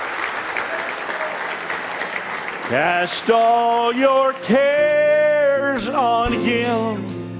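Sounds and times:
audience clapping hands in praise at a church service: 0:00.0 - 0:05.4
speech: 0:02.7 - 0:07.2.

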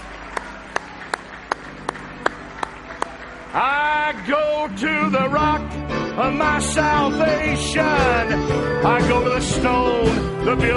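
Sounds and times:
audience clapping hands in unison: 0:00.0 - 0:05.0
speech: 0:03.6 - 0:10.7.

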